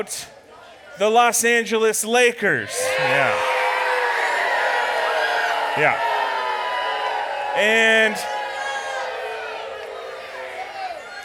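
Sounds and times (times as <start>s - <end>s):
speech: 0.0s - 0.4s, 1.0s - 3.6s, 5.8s - 6.1s, 7.6s - 8.3s
crowd booing: 2.6s - 11.2s.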